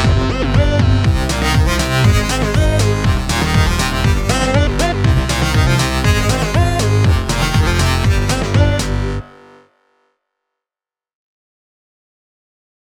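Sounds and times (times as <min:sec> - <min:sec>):
funky music: 0:00.0 - 0:09.4.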